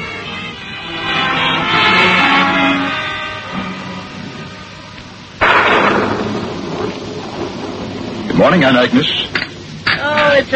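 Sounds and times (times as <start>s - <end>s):
rain falling outside: 0.0s - 10.5s
speech: 8.4s - 9.3s, 10.4s - 10.5s.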